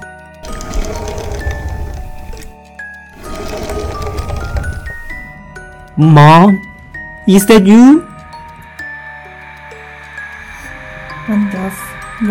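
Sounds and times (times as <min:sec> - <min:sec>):
toy car rolling: 0:00.4 - 0:02.6, 0:03.2 - 0:05.3
speech: 0:06.0 - 0:08.1.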